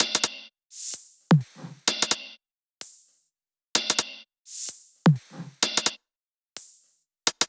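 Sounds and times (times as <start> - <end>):
drum loops: 0.0 - 2.2, 3.8 - 6.0.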